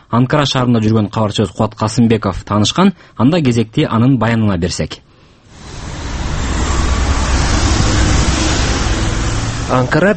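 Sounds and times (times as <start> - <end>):
speech: 0.1 - 5.1, 9.7 - 10.1
busy city street traffic in Ankara, Turkey: 5.5 - 10.1.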